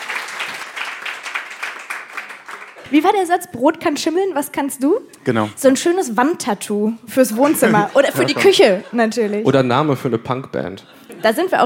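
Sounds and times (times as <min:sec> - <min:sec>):
seated audience applause: 0:00.0 - 0:03.0
speech: 0:02.9 - 0:11.6
laughter: 0:07.3 - 0:11.6.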